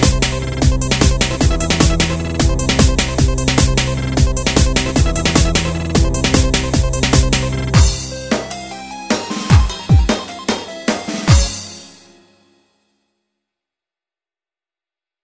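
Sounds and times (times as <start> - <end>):
techno music in nine-eight time: 0.0 - 12.2.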